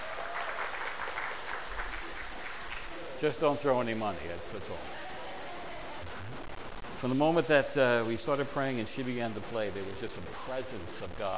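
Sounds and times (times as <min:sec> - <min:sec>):
audience clapping: 0:00.0 - 0:03.2
speech: 0:03.2 - 0:05.1, 0:07.0 - 0:11.3.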